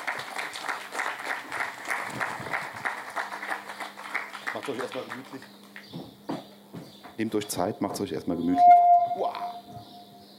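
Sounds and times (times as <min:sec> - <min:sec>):
audience applause welcoming guests: 0:00.0 - 0:05.5
speech: 0:04.6 - 0:06.1, 0:07.2 - 0:09.3.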